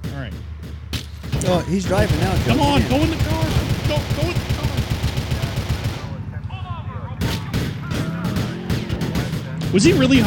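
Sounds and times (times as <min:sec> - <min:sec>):
video game gunfire: 0:00.0 - 0:06.2, 0:07.2 - 0:10.2
speech: 0:00.2 - 0:00.6, 0:01.4 - 0:04.7, 0:09.7 - 0:10.2.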